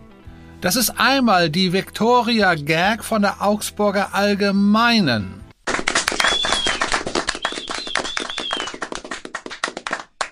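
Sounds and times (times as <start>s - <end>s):
speech: 0.6s - 5.4s
audience applause: 5.7s - 10.3s.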